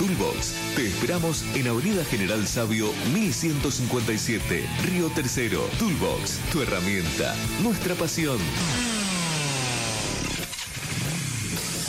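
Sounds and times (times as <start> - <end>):
speech: 0.1 - 8.9
car or motorcycle engine roaring: 6.2 - 11.8.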